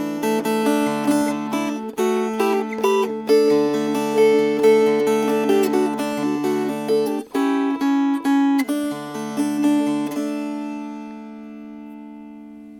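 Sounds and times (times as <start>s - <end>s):
fingerpicked guitar piece: 0.0s - 12.7s.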